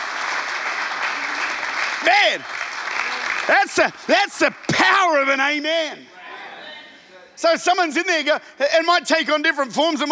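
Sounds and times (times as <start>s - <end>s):
audience clapping: 0.0s - 5.6s
speech: 2.0s - 2.6s, 3.5s - 6.1s, 7.4s - 10.1s.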